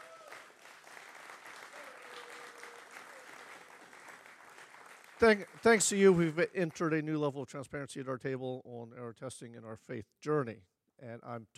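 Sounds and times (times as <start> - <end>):
crowd applauding: 0.0 - 7.0
speech: 5.2 - 11.5.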